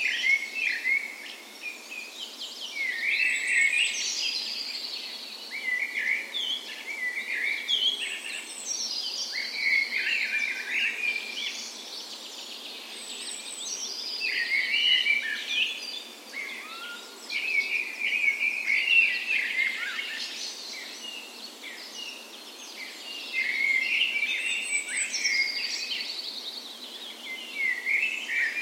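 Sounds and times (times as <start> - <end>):
birds dawn chorus: 0.0 - 28.5
steady hiss: 0.0 - 28.5.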